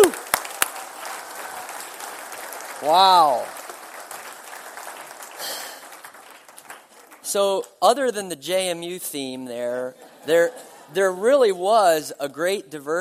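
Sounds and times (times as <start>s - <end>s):
audience applause: 0.0s - 7.3s
speech: 2.8s - 3.6s, 7.3s - 12.9s.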